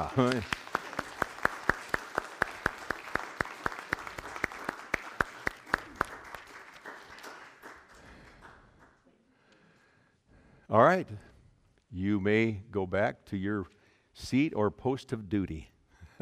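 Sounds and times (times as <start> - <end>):
speech: 0.0 - 0.7, 10.7 - 11.3, 11.9 - 16.2
audience clapping: 0.0 - 9.1.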